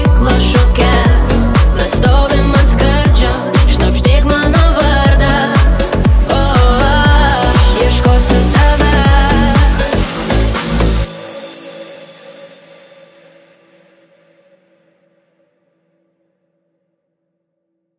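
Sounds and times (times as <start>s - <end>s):
club mix dance music: 0.0s - 11.7s.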